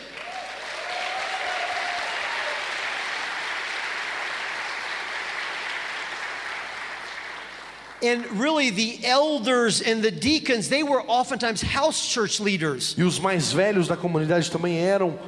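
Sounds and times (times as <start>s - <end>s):
applause: 0.0s - 8.2s
speech: 8.0s - 15.2s.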